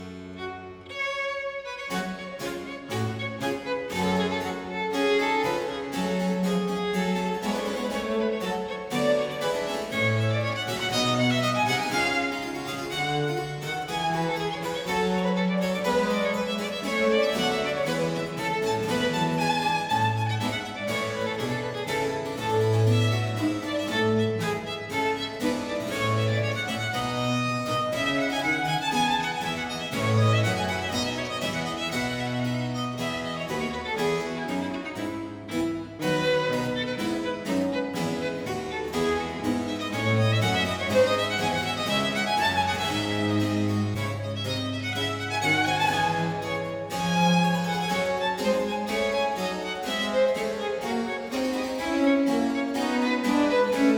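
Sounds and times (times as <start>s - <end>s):
violin and basso continuo sonata in G minor, allegro movement: 0.0s - 53.9s.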